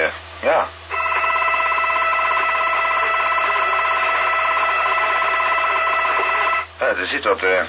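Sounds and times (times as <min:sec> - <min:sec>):
speech: 0:00.4 - 0:00.8, 0:06.9 - 0:07.6
digital radio signal, buzzing warble of stacked tones: 0:00.4 - 0:06.7
continuous beeping tone in the radio signal: 0:00.9 - 0:06.7.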